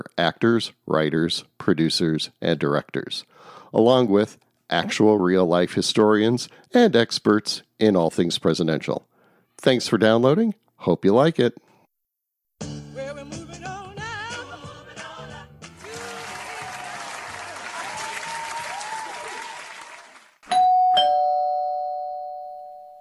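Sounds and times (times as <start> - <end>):
speech: 0.0 - 11.6
music: 12.6 - 18.2
loud applause: 15.8 - 20.4
doorbell chiming ding-dong: 20.5 - 22.9.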